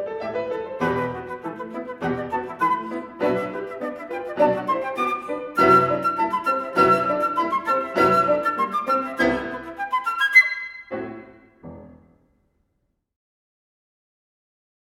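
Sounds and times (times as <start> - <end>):
flute duo: 0.5 - 11.3.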